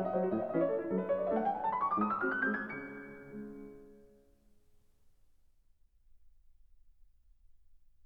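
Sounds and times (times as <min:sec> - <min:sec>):
waltz in C-sharp minor: 0:00.0 - 0:04.2.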